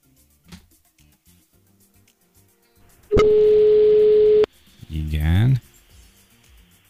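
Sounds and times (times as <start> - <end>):
telephone ringback tone while placing a call: 3.1 - 4.5.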